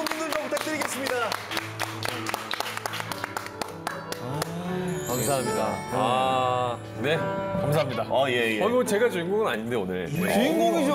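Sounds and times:
applause: 0.0s - 4.7s
speech: 5.3s - 10.9s.

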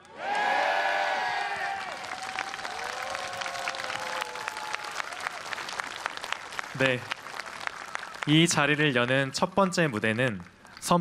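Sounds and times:
cheers and whoops: 0.1s - 5.6s
audience clapping: 1.3s - 11.0s
speech: 6.8s - 7.2s, 8.2s - 11.0s.

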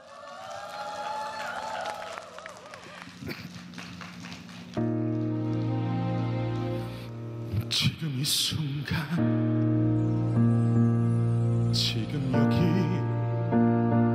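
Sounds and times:
audience applause: 0.0s - 6.8s
music with steady sustained tones: 3.4s - 14.1s
speech: 7.8s - 10.0s.

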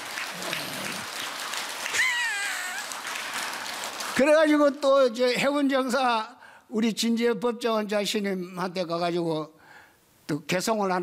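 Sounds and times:
audience applause: 0.0s - 4.8s
speech: 4.2s - 9.6s, 10.3s - 11.0s.

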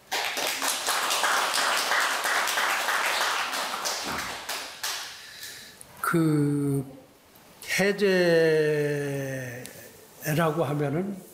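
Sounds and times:
crowd applauding: 0.0s - 5.4s
speech: 6.1s - 7.0s, 7.8s - 9.6s, 10.3s - 11.3s.

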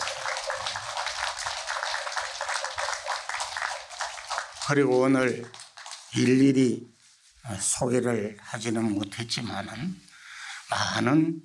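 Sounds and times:
audience applause honoring a Buddhist monk at a temple fundraising gathering: 0.0s - 6.2s
speech: 4.7s - 10.1s, 10.7s - 11.4s.

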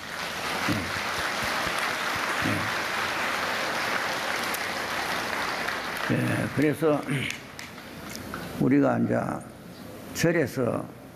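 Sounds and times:
audience applause: 0.0s - 7.4s
speech: 0.7s - 1.0s, 6.1s - 7.4s, 8.6s - 9.5s, 10.2s - 11.0s.

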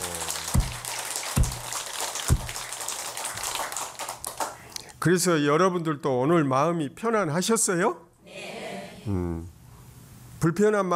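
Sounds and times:
audience applause: 0.0s - 4.6s
speech: 5.0s - 8.1s, 9.0s - 9.6s, 10.4s - 10.9s.

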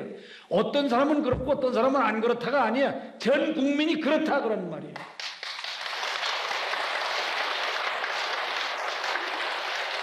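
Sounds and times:
speech: 0.3s - 5.2s
audience applause: 5.2s - 10.0s.

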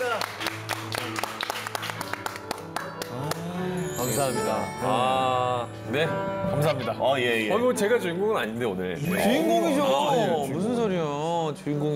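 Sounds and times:
audience applause: 0.0s - 3.5s
speech: 4.2s - 11.9s.

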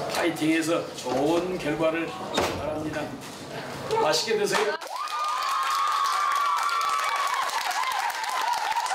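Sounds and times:
speech: 0.2s - 4.8s
scattered clapping: 4.5s - 8.9s
students cheering and shouting: 4.8s - 8.9s.

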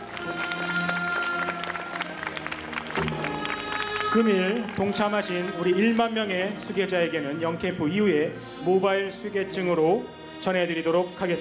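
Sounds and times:
audience applause in celebration: 0.0s - 6.1s
speech: 4.1s - 11.4s.

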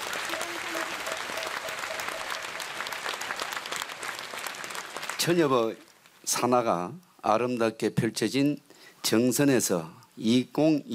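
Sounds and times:
audience applause welcoming a speaker: 0.0s - 5.9s
speech: 5.2s - 10.9s.

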